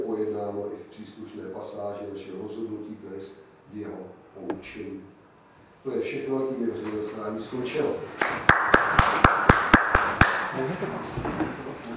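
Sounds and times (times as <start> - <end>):
speech: 0.9 - 5.2, 5.8 - 9.4, 10.5 - 11.5
audience clapping: 8.2 - 10.6.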